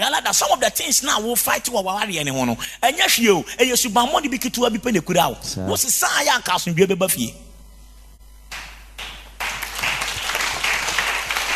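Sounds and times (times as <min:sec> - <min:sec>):
speech: 0:00.3 - 0:07.5
church congregation clapping during a service: 0:08.5 - 0:11.5.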